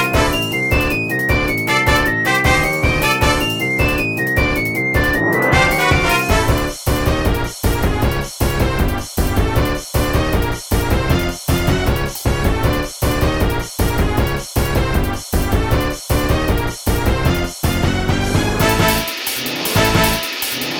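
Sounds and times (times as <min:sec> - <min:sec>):
flute: 0:00.0 - 0:06.7
piano: 0:00.0 - 0:07.2
strings: 0:00.0 - 0:07.4
brass: 0:00.0 - 0:20.4.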